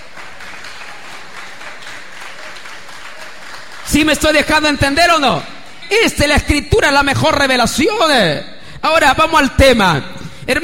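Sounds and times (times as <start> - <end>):
audience applause: 0.0 - 4.7
speech: 3.9 - 10.6.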